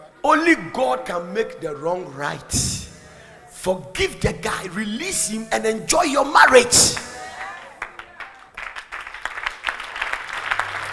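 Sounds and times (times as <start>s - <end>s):
speech: 0.2s - 2.8s, 3.6s - 7.1s
audience clapping: 6.7s - 10.9s.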